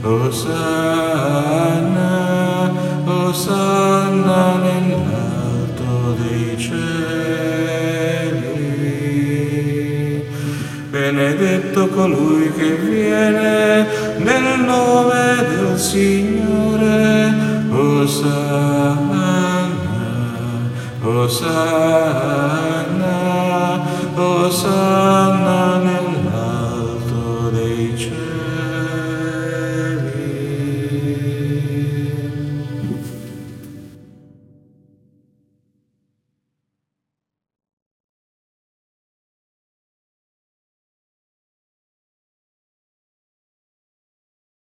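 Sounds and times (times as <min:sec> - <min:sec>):
contralto voices singing: 0:00.0 - 0:34.0.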